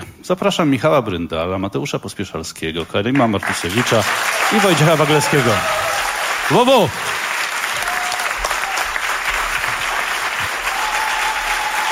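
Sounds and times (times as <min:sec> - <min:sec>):
speech: 0:00.3 - 0:07.2
audience applause at a live radio concert event: 0:03.2 - 0:11.8.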